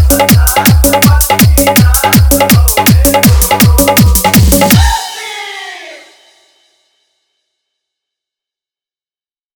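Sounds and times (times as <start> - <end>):
dholak bass dance mix: 0.0 - 6.4.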